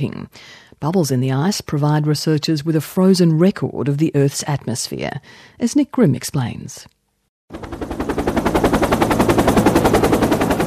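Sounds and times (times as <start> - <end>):
speech: 0.0 - 7.7
helicopter hovering over the French Alps: 7.5 - 10.6.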